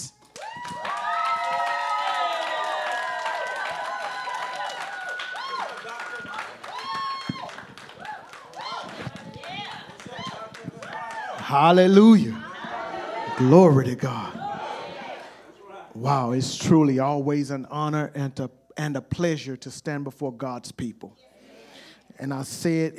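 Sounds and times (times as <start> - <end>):
cheering and shouting voices: 0.0 - 16.0
audience clapping: 0.2 - 11.8
speech: 11.5 - 12.4, 13.4 - 14.4, 16.0 - 21.3, 22.2 - 22.9.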